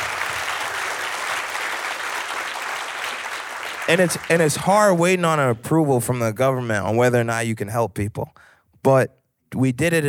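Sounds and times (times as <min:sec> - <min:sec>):
audience clapping: 0:00.0 - 0:05.1
speech: 0:03.9 - 0:10.0.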